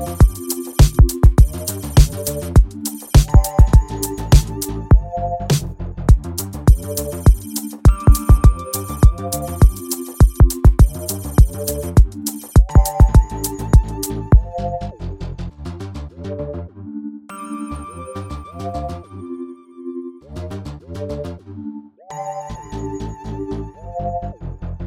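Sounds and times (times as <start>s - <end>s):
jingle loop: 0.0s - 5.6s, 6.4s - 15.0s, 17.3s - 20.0s, 22.1s - 24.6s.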